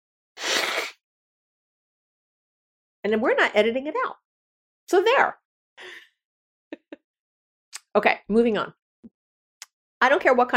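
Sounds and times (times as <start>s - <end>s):
nose blowing: 0.4s - 1.0s
speech: 3.0s - 4.2s, 4.9s - 6.0s, 8.0s - 8.8s, 10.0s - 10.5s.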